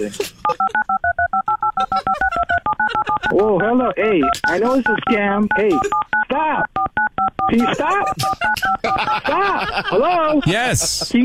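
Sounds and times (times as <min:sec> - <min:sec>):
speech: 0:00.0 - 0:00.6, 0:03.3 - 0:06.7, 0:07.5 - 0:11.2
laughter: 0:00.0 - 0:00.9, 0:01.8 - 0:03.6, 0:07.6 - 0:11.2
telephone keypad tones: 0:00.5 - 0:09.1.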